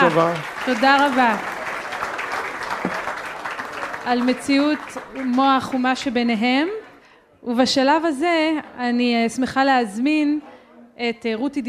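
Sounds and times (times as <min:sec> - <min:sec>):
speech: 0:00.0 - 0:01.5, 0:04.0 - 0:06.8, 0:07.4 - 0:11.6
audience applause: 0:00.0 - 0:06.0.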